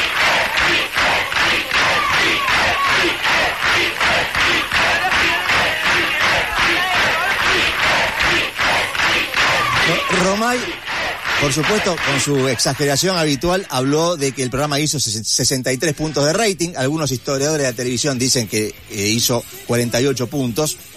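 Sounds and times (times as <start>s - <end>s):
crowd chanting a band's name: 0.0s - 15.1s
speech: 11.4s - 20.9s.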